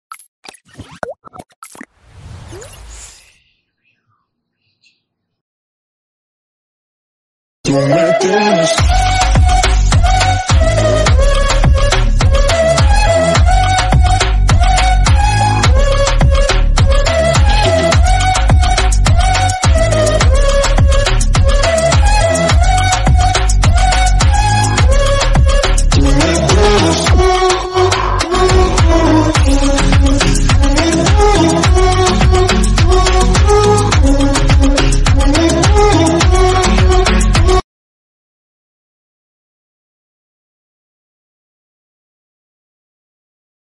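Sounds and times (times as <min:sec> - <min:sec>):
remix ringtone music: 0:07.7 - 0:37.6.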